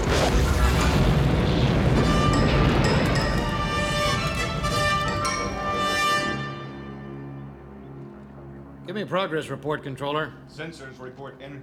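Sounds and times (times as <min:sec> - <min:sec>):
explosion: 0:00.0 - 0:05.8
speech: 0:09.0 - 0:11.6.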